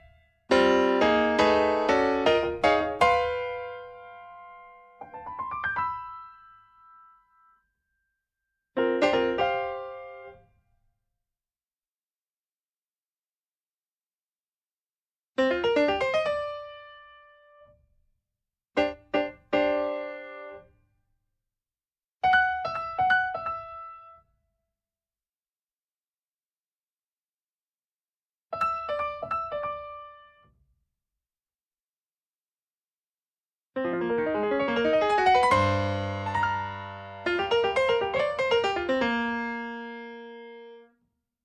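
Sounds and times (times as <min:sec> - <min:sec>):
piano: 0:00.0 - 0:07.8, 0:08.7 - 0:10.6, 0:15.4 - 0:17.9, 0:18.8 - 0:20.8, 0:22.2 - 0:24.3, 0:28.6 - 0:30.6, 0:33.8 - 0:41.0.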